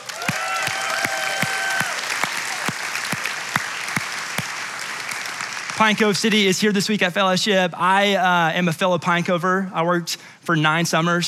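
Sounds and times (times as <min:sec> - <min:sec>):
church congregation applause welcoming Pine Cove camp guests: 0:00.0 - 0:06.5
speech: 0:05.8 - 0:11.2.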